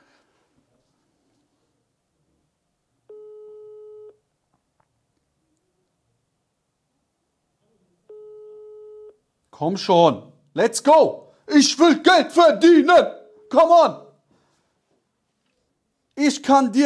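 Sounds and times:
telephone ringback tone, unanswered: 0:03.1 - 0:04.2, 0:08.1 - 0:09.1
speech: 0:09.6 - 0:14.0, 0:16.2 - 0:16.8.

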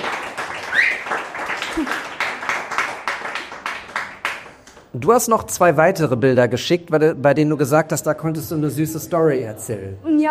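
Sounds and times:
audience applause: 0:00.0 - 0:04.9
speech: 0:05.0 - 0:10.3.

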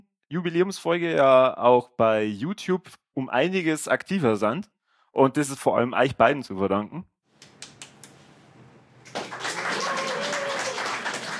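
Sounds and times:
speech: 0:00.3 - 0:07.1
spontaneous applause: 0:09.0 - 0:11.3.

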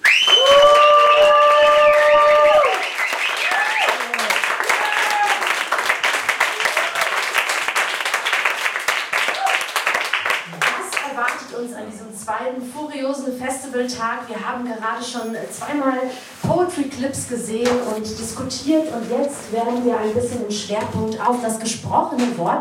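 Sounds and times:
audience applause: 0:00.0 - 0:11.1
speech: 0:13.7 - 0:22.6.

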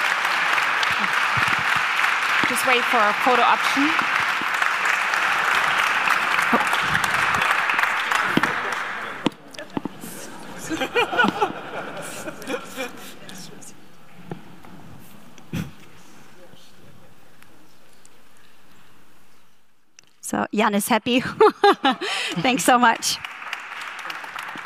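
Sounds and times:
audience applause: 0:00.0 - 0:09.4, 0:21.6 - 0:24.6
laughter: 0:00.4 - 0:01.8, 0:05.1 - 0:09.3, 0:10.0 - 0:13.3, 0:21.2 - 0:23.2
speech: 0:02.6 - 0:04.2, 0:20.6 - 0:23.3.

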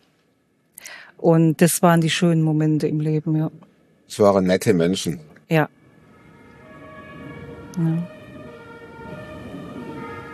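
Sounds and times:
continuous low traffic rumble: 0:01.1 - 0:10.3
speech: 0:01.2 - 0:05.8, 0:07.8 - 0:08.1
emergency vehicle sirens wailing: 0:04.2 - 0:10.3.

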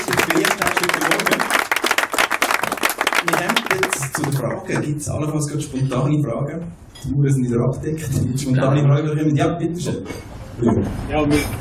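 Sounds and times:
audience applause: 0:00.0 - 0:04.5
speech: 0:04.2 - 0:11.5.

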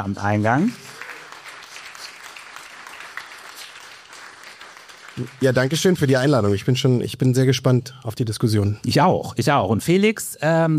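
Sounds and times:
speech: 0:00.0 - 0:00.9, 0:05.2 - 0:10.7
audience applause welcoming a guest to a discussion event: 0:00.3 - 0:06.4.

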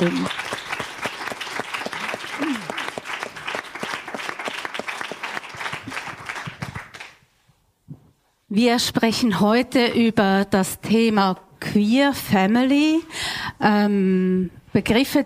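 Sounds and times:
speech: 0:00.0 - 0:00.5, 0:08.6 - 0:15.2
audience applause: 0:00.0 - 0:07.2.

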